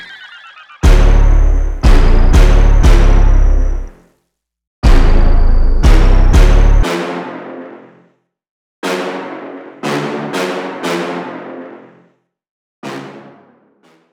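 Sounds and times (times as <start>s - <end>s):
brass instruments: 0.8s - 3.9s, 4.8s - 8.1s, 8.8s - 12.1s, 12.8s - 14.0s.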